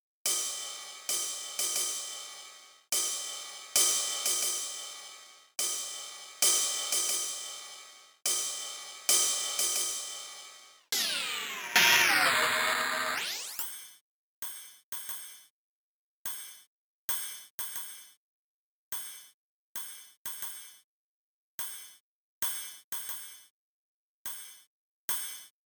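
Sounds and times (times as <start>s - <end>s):
909 drum machine ride cymbal accent: 0.3s - 13.6s.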